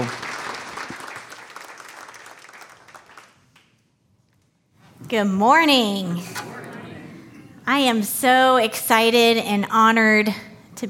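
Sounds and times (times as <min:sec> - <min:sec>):
audience round of applause: 0:00.0 - 0:03.5
speech: 0:05.1 - 0:06.4, 0:07.7 - 0:10.8.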